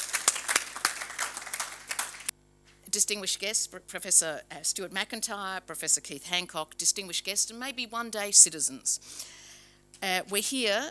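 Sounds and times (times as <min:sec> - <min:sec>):
audience applause at a formal book launch: 0:00.0 - 0:02.3
speech: 0:02.9 - 0:09.4, 0:10.0 - 0:10.8.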